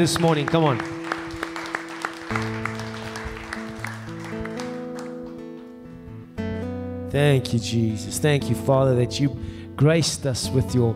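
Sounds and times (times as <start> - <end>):
speech: 0.0 - 1.0, 7.1 - 10.9
audience applauding: 0.0 - 5.4.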